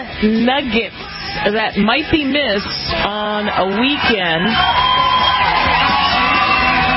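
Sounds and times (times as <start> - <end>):
speech: 0.2 - 5.1
audience cheering with yelling and whooping voices: 3.4 - 6.9.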